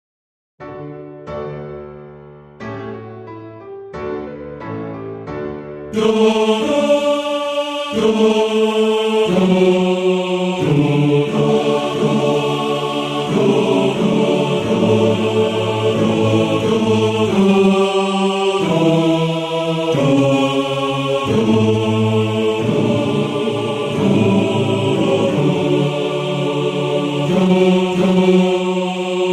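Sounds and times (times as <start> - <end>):
choir singing: 5.9 - 29.3.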